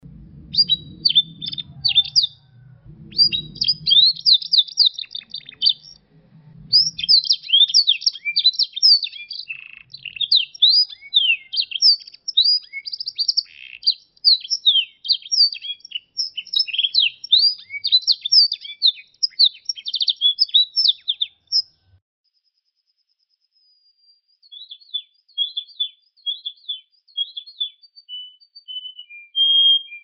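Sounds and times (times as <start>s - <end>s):
low steady hum: 0.0s - 7.7s
Yorkshire canary singing: 0.0s - 21.8s, 24.6s - 30.0s.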